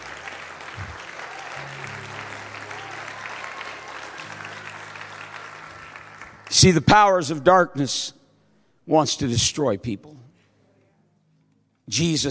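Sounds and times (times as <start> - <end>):
audience clapping hands: 0.0 - 7.4
speech: 6.6 - 8.2, 8.9 - 10.2, 11.9 - 12.3.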